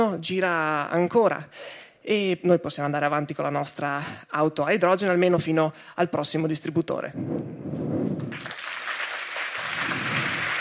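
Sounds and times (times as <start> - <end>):
speech: 0.0 - 8.3
audience applause: 8.3 - 10.5.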